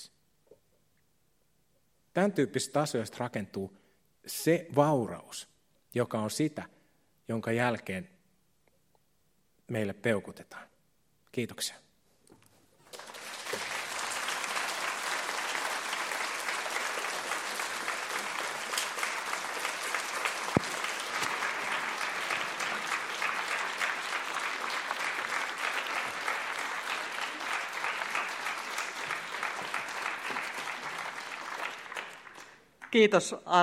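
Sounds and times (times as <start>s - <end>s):
speech: 2.2s - 8.2s, 9.7s - 10.7s, 11.3s - 11.8s, 32.9s - 33.6s
long applause: 12.8s - 33.0s.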